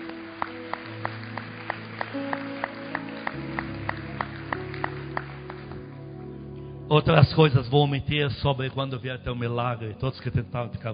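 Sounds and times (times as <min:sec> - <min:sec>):
audience clapping in a steady beat: 0:00.0 - 0:06.0
keyboard or organ chords: 0:00.0 - 0:10.9
speech: 0:06.9 - 0:10.9.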